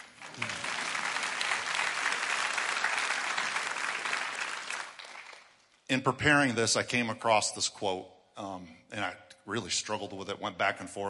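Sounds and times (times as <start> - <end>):
audience applause: 0.0 - 5.6
speech: 5.9 - 11.0.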